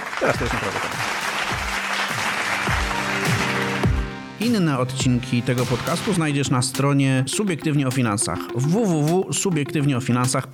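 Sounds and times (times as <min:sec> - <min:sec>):
applause: 0:00.0 - 0:04.2
speech: 0:00.2 - 0:01.1, 0:04.4 - 0:10.5.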